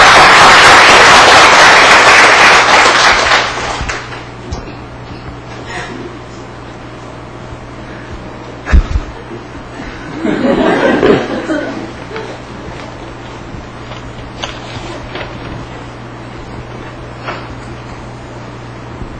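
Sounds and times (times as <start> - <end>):
audience applause: 0.0 - 4.3
laughter: 8.7 - 12.5.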